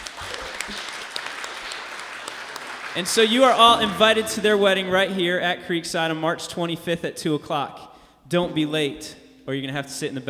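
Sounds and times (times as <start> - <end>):
crowd applauding: 0.0 - 5.3
speech: 3.0 - 10.2.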